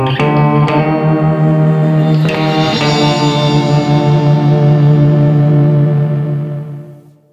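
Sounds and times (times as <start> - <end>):
losing sound effect: 0.1 - 6.5.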